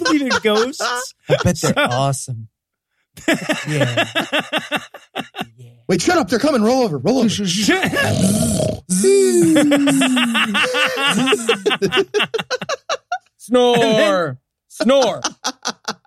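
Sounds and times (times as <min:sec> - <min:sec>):
laughter: 0:00.0 - 0:02.2, 0:03.2 - 0:05.6, 0:09.4 - 0:14.2, 0:14.9 - 0:16.0
speech: 0:00.1 - 0:02.5, 0:03.2 - 0:16.0
person imitating snoring: 0:08.0 - 0:10.4.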